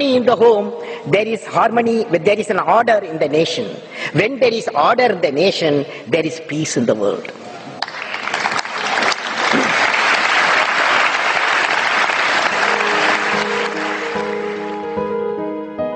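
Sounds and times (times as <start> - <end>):
speech: 0.0 - 7.5
large crowd giving standing ovation: 7.8 - 15.0.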